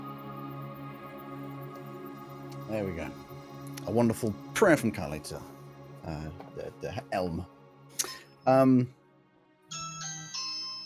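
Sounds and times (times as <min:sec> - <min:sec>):
speech: 0:02.7 - 0:03.3, 0:03.9 - 0:09.0
doorbell ringing: 0:09.7 - 0:10.8.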